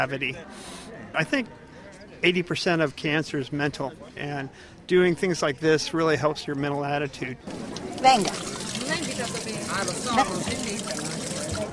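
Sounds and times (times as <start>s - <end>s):
speech: 0.0s - 1.6s, 2.2s - 11.7s
water from the Lourdes spring pouring into bottles: 7.5s - 11.7s.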